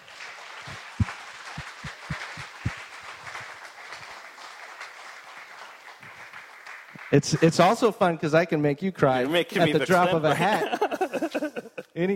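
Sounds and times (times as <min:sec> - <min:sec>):
audience applause: 0:00.0 - 0:07.8
speech: 0:07.1 - 0:12.1
laughter: 0:09.5 - 0:12.0.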